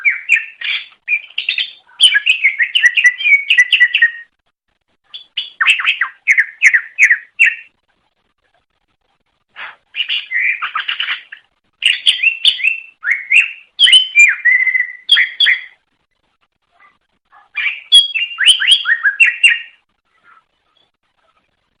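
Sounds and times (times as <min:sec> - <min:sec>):
leafbird whistling song: 0:00.0 - 0:04.3, 0:05.1 - 0:07.7, 0:09.9 - 0:15.8, 0:17.6 - 0:20.9.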